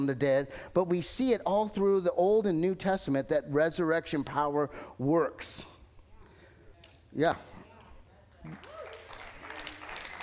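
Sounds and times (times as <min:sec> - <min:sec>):
speech: 0:00.0 - 0:05.8, 0:07.1 - 0:07.5, 0:08.4 - 0:08.7
audience applause: 0:08.4 - 0:10.2.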